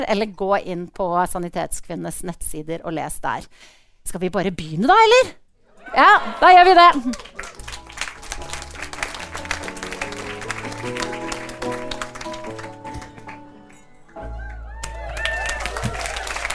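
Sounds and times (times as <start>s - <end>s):
speech: 0.0s - 7.6s
audience applause in a basement venue: 6.4s - 16.5s.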